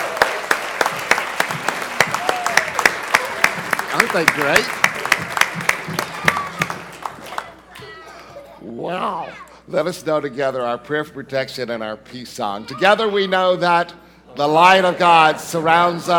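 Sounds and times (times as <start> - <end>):
crowd applauding: 0.0 - 8.3
speech: 4.0 - 4.9, 8.8 - 16.1.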